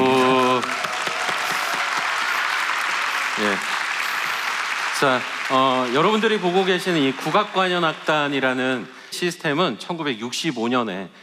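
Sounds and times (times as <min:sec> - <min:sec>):
audience applause: 0:00.0 - 0:09.0
speech: 0:05.0 - 0:11.2.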